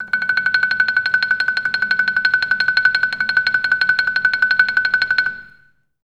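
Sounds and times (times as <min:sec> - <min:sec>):
orchestra playing tremolo on F#5: 0:00.0 - 0:05.5.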